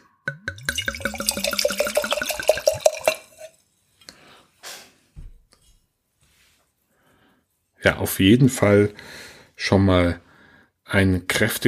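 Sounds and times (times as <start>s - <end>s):
red wine being poured into a glass: 0.3s - 3.6s
speech: 7.8s - 10.2s, 10.9s - 11.6s.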